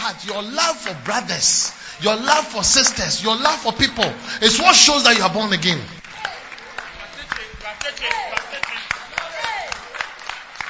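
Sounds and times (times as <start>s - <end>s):
audience clapping: 0.0s - 10.6s
speech: 0.1s - 6.0s.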